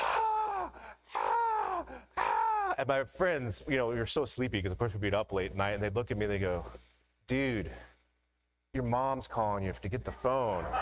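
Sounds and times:
human voice imitating a pet bird screaming: 0:00.0 - 0:02.8
speech: 0:02.8 - 0:07.9, 0:08.7 - 0:10.8.

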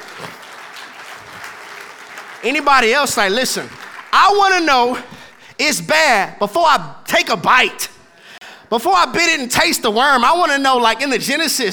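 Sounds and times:
audience golf claps: 0:00.0 - 0:05.6
speech: 0:02.4 - 0:07.9, 0:08.7 - 0:11.7.

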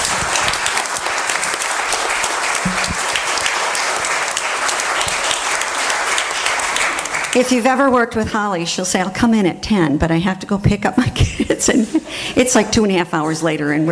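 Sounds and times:
audience applauding: 0:00.0 - 0:07.6
speech: 0:07.4 - 0:13.9.

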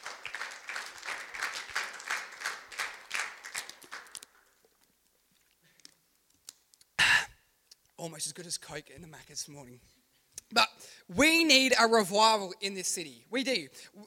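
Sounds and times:
audience clapping: 0:00.0 - 0:04.6
speech: 0:08.0 - 0:14.0.

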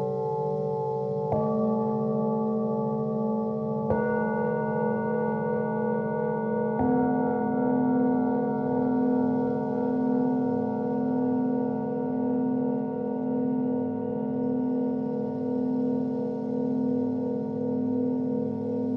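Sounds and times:
singing bowls struck and ringing: 0:00.0 - 0:18.9.

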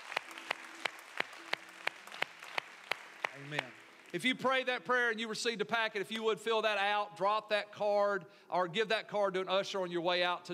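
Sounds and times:
audience hand clapping: 0:00.0 - 0:04.7
speech: 0:03.4 - 0:10.5.

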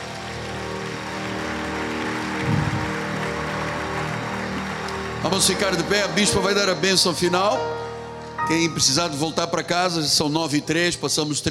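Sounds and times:
audience applause: 0:00.0 - 0:07.2
speech: 0:05.2 - 0:07.8, 0:08.4 - 0:11.5.

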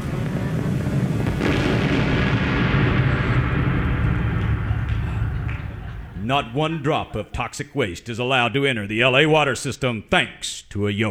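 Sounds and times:
roaring landslide: 0:00.0 - 0:09.5
laughter: 0:04.0 - 0:08.0
speech: 0:06.3 - 0:11.0.

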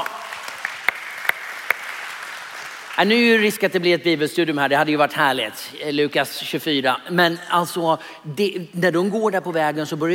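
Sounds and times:
audience applause: 0:00.0 - 0:03.0
speech: 0:03.0 - 0:10.1.

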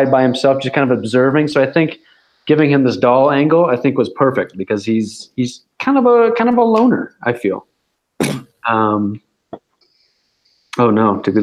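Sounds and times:
speech: 0:00.0 - 0:09.2, 0:10.8 - 0:11.4
man sneezing: 0:08.2 - 0:08.6.

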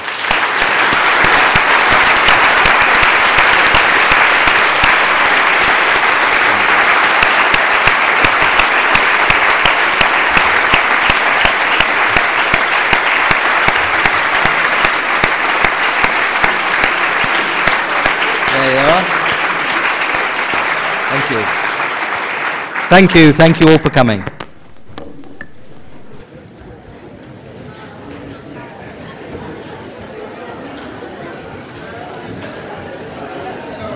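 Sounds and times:
loud applause from a large audience: 0:00.0 - 0:26.2
speech: 0:22.9 - 0:24.4.

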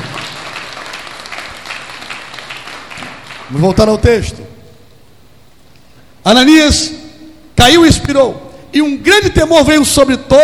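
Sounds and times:
audience applauding loudly: 0:00.0 - 0:03.6
speech: 0:03.5 - 0:04.4, 0:06.3 - 0:07.0, 0:07.6 - 0:10.4.

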